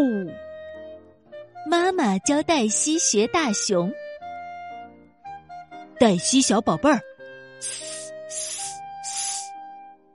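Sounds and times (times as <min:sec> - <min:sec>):
music: 0:00.0 - 0:10.1
speech: 0:02.0 - 0:04.0, 0:06.0 - 0:08.5
person imitating a snake's hiss: 0:07.6 - 0:09.5.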